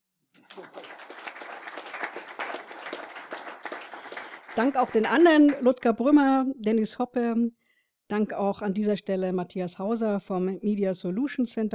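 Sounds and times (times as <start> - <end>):
audience applause: 0.4 - 5.8
speech: 4.6 - 11.7.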